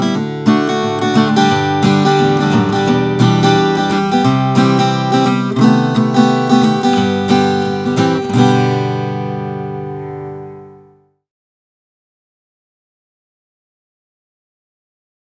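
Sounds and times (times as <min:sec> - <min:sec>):
acoustic guitar with solid Adirondack spruce top playing: 0:00.0 - 0:11.1.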